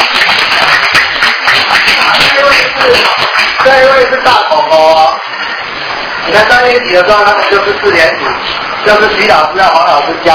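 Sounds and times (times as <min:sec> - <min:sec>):
group clapping hands in welcome: 0:00.0 - 0:04.7
speech: 0:06.3 - 0:10.3.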